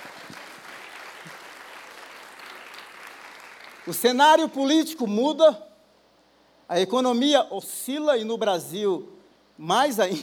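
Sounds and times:
audience applause: 0.0 - 3.9
speech: 3.9 - 5.7, 6.7 - 10.2.

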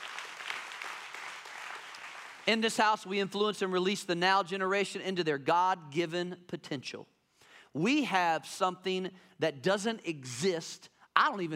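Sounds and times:
crowd applauding: 0.0 - 2.5
speech: 2.5 - 7.1, 7.7 - 11.5.

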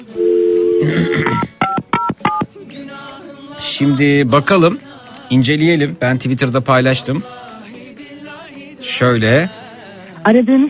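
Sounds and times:
speech: 0.8 - 1.5, 3.8 - 7.4, 9.0 - 9.6, 10.2 - 10.6
telephone keypad dual-tone beeps: 1.6 - 2.5.

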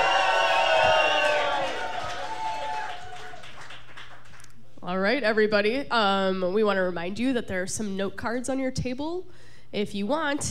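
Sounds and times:
live audience cheering and whooping at a club show: 0.0 - 3.8
speech: 5.2 - 10.4.

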